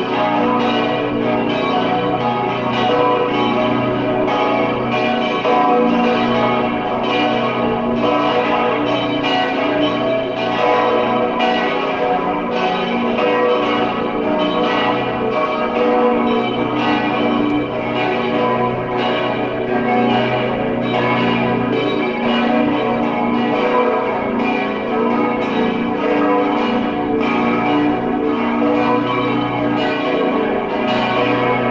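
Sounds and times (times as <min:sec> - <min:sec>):
bells ringing: 0:00.0 - 0:31.7.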